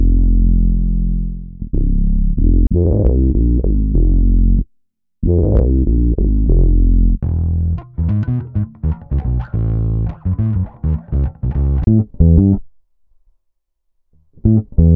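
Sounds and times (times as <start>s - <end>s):
hip hop bass loop: 0.0s - 4.6s, 5.2s - 12.6s, 14.4s - 14.9s.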